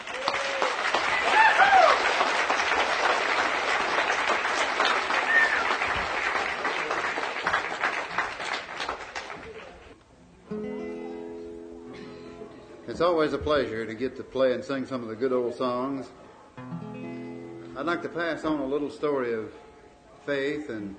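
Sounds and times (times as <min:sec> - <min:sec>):
audience applause welcoming a folk guitarist: 0:00.0 - 0:10.0
speech: 0:13.2 - 0:16.2, 0:17.8 - 0:19.6, 0:20.2 - 0:20.9.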